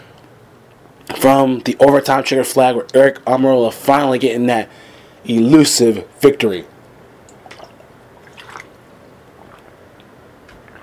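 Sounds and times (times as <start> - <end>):
quiet hiss: 0.0 - 10.8
speech: 1.2 - 6.7
person taking a swig of water: 9.3 - 10.8.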